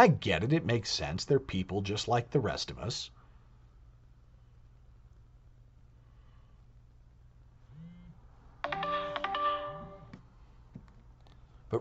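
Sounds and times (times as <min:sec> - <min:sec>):
speech: 0:00.0 - 0:03.2
electronic alarm ringing: 0:08.6 - 0:10.1.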